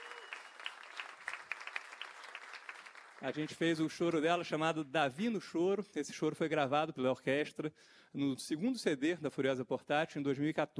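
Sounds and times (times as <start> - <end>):
audience applause: 0.0 - 3.6
speech: 3.2 - 10.7.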